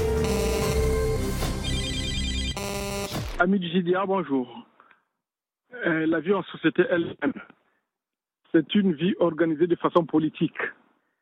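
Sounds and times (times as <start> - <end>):
answering machine beep: 0.1 - 3.3
speech: 3.4 - 4.6, 5.7 - 7.5, 8.5 - 10.8.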